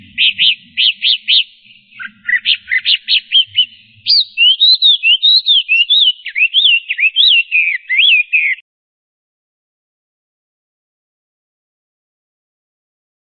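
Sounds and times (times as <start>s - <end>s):
Chinese hwamei singing loud rapid whistled phrases: 0.0s - 8.6s.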